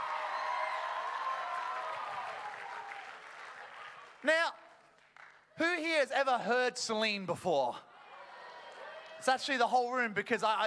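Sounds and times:
audience applause: 0.0 - 4.2
speech: 5.8 - 7.9, 9.2 - 10.6.

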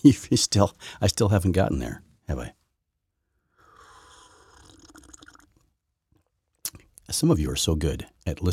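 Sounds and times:
speech: 0.0 - 2.6, 7.1 - 8.5
sipping a drink from a cup: 3.7 - 5.7.

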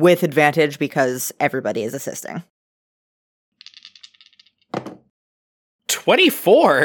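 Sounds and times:
speech: 0.0 - 2.5, 6.0 - 6.8
dice being rolled: 3.6 - 5.0.

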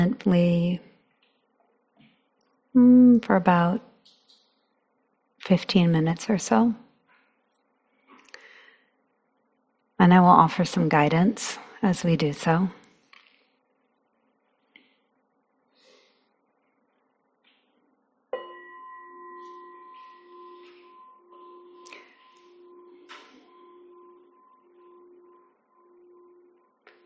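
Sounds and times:
speech: 0.0 - 0.9, 2.8 - 3.9, 5.4 - 6.8, 10.0 - 12.8
bell rung to begin silent sitting: 18.4 - 27.0.

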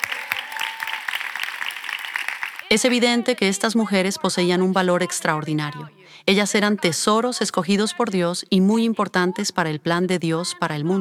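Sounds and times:
audience applause: 0.0 - 3.4
speech: 2.7 - 10.9.

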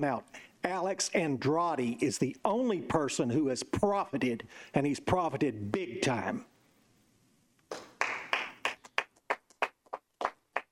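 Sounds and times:
speech: 0.0 - 6.5
one person clapping: 7.7 - 10.6.

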